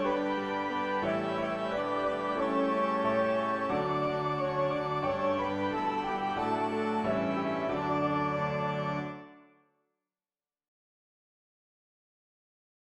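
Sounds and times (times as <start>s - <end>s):
easy piano piece: 0.0s - 9.4s.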